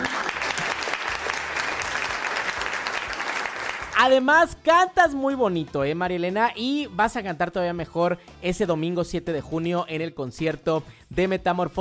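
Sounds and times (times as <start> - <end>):
applause: 0.0 - 4.3
speech: 4.0 - 11.7.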